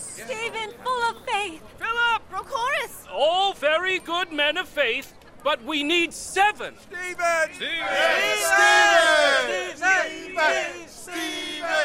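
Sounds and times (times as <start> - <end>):
speech: 0.2 - 11.8
crowd chanting a name: 6.9 - 11.8.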